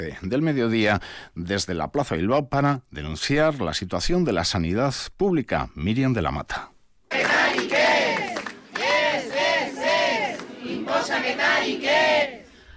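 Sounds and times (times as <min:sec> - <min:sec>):
speech: 0:00.0 - 0:06.7
crowd of protesters chanting a slogan: 0:07.1 - 0:12.5.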